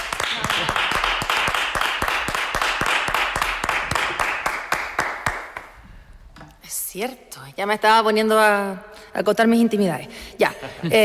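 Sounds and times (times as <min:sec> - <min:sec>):
audience applause: 0:00.0 - 0:05.6
speech: 0:07.0 - 0:11.0.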